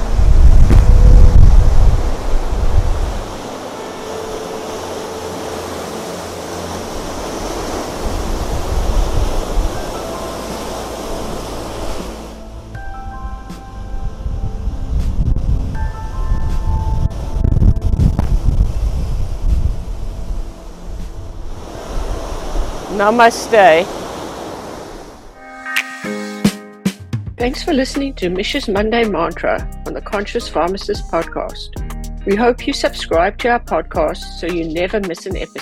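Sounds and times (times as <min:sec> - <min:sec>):
wind buffeting the microphone: 0:00.0 - 0:25.4
stormy ocean waves surging and crashing: 0:00.0 - 0:26.2
speech: 0:23.0 - 0:24.0, 0:27.4 - 0:35.6.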